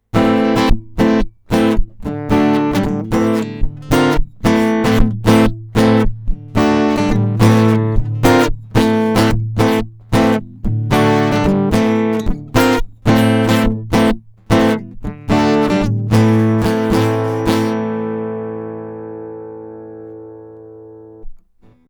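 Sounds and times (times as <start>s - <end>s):
guitar: 0.0s - 21.8s.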